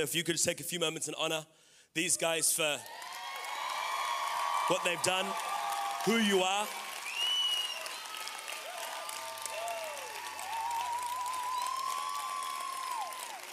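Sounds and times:
speech: 0:00.0 - 0:03.2, 0:04.7 - 0:06.8
crowd applauding: 0:02.8 - 0:13.5
whistles and cheers: 0:02.8 - 0:13.5.

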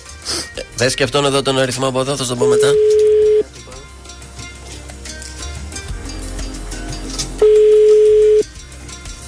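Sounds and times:
speech: 0:00.8 - 0:03.0
telephone ringing tone: 0:02.4 - 0:03.4, 0:07.4 - 0:08.5.

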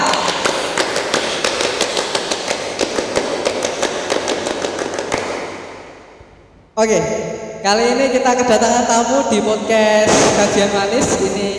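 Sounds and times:
scout-style rhythmic clapping: 0:00.0 - 0:05.9
speech: 0:06.8 - 0:11.5.

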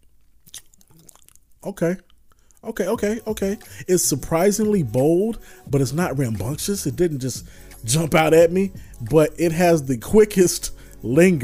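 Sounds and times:
chewing a forkful of fried green tomato with sauce: 0:00.0 - 0:02.7
speech: 0:01.6 - 0:11.4.

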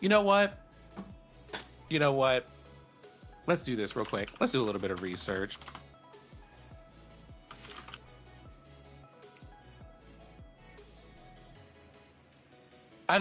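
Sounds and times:
speech: 0:00.0 - 0:00.6, 0:01.9 - 0:02.6, 0:03.5 - 0:05.8, 0:13.1 - 0:13.2
continuous sound: 0:00.0 - 0:13.2
typing on a computer keyboard: 0:03.9 - 0:05.9, 0:07.5 - 0:08.0.

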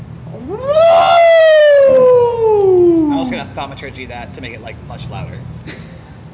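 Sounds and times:
speech: 0:00.4 - 0:00.8, 0:03.6 - 0:06.0
person imitating a wolf howl: 0:00.4 - 0:03.4.

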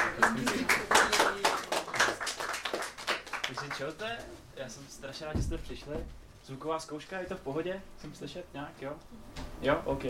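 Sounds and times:
audience applause for a speaker: 0:00.0 - 0:03.9
speech: 0:03.8 - 0:10.0.

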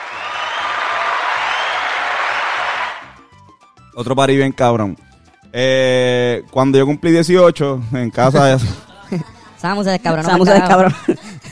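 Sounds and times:
applause: 0:00.0 - 0:03.2
speech: 0:04.0 - 0:11.4
laughter: 0:08.3 - 0:11.4.

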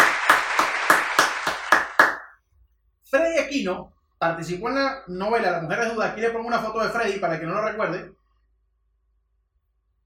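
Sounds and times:
audience applause: 0:00.0 - 0:02.3
speech: 0:03.5 - 0:08.2.

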